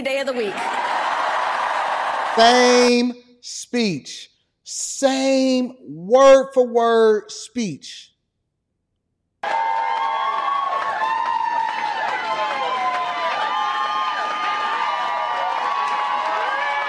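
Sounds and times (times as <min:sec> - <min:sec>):
speech: 0:00.0 - 0:00.8, 0:02.4 - 0:08.1
crowd applause and cheering: 0:00.0 - 0:03.1, 0:09.4 - 0:16.8.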